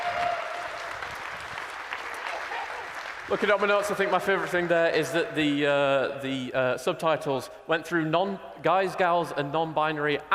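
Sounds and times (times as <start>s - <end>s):
crowd applause: 0.0s - 5.1s
speech: 3.3s - 10.3s.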